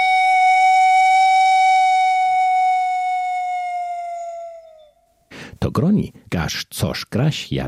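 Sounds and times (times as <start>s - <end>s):
pan flute holding a long note: 0.0s - 5.0s
speech: 5.8s - 7.6s.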